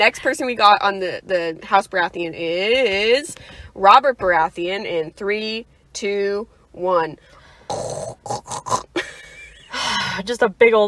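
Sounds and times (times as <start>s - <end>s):
speech: 0.0s - 8.8s, 10.2s - 10.8s
person imitating snorting pig grunts: 7.7s - 9.0s.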